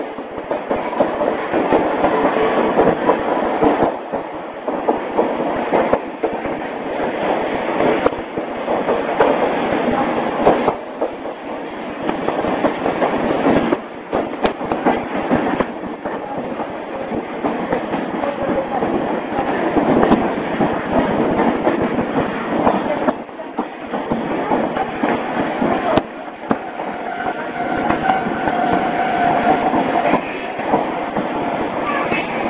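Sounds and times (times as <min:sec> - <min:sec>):
Jomo Electric Railway Deha 350 train departing Joto Station: 0:00.0 - 0:32.4.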